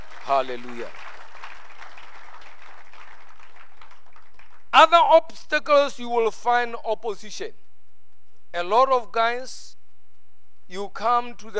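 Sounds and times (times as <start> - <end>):
audience applause: 0.0 - 4.7
speech: 0.3 - 1.1, 4.7 - 7.6, 8.5 - 9.8, 10.7 - 11.5.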